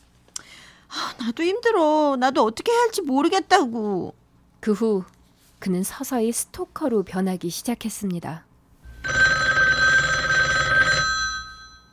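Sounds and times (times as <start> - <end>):
speech: 1.2 - 9.2
telephone bell ringing: 8.9 - 11.9.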